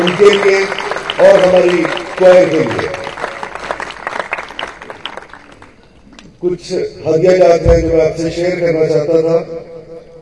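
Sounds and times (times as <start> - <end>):
speech: 0.0 - 3.0, 6.4 - 9.7
applause: 0.0 - 5.8.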